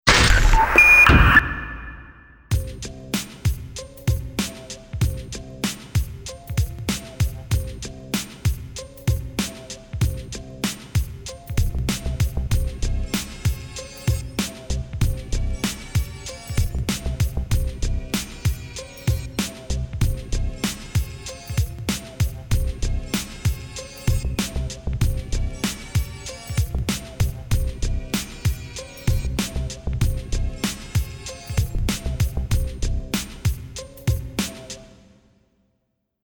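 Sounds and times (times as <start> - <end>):
music bed: 0.0 - 35.3
sound effect: 0.1 - 2.5.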